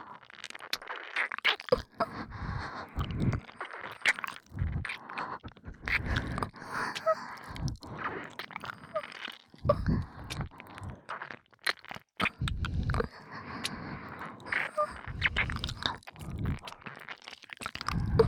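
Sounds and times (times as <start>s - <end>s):
ear licking in both ears: 0.0s - 18.2s
breathing sounds in both ears: 1.9s - 11.2s, 12.2s - 16.8s, 17.8s - 18.2s.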